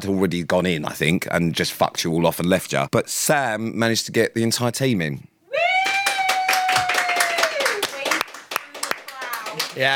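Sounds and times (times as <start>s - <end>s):
speech: 0.0s - 6.0s, 9.8s - 9.9s
applause: 5.8s - 9.9s.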